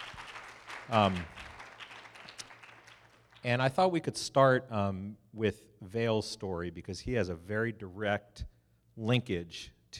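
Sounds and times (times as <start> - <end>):
audience applause: 0.0 - 3.4
speech: 0.9 - 1.4, 3.4 - 9.9.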